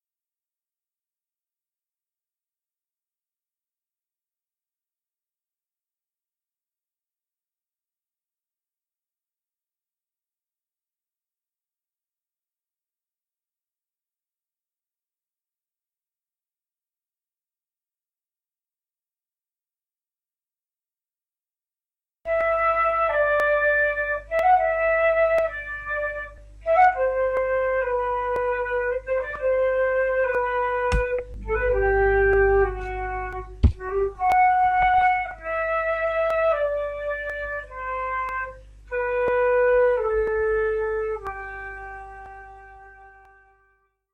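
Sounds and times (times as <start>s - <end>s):
flute: 22.3s - 43.8s.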